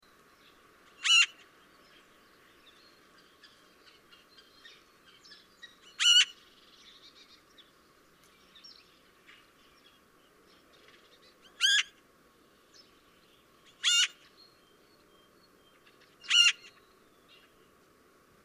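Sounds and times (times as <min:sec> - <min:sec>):
Eurasian magpie giving loud harsh notes: 0:01.0 - 0:01.4, 0:05.9 - 0:06.4, 0:11.4 - 0:12.0, 0:13.7 - 0:14.2, 0:16.2 - 0:16.8.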